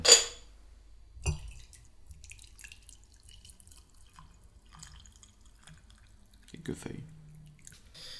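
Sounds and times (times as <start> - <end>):
cup clinking: 0.0 - 0.4
herbal tea being poured into a cup: 1.3 - 6.8
speech: 6.7 - 7.2.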